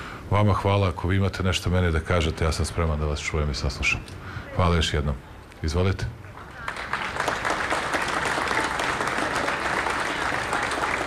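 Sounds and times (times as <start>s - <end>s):
speech: 0.3s - 6.2s
applause after a speech at an official event: 6.2s - 11.0s.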